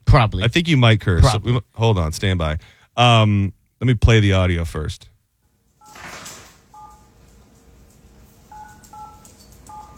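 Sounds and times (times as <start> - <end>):
speech: 0.1 - 5.1
kid's toy phone beeping: 6.7 - 7.1, 8.5 - 9.9.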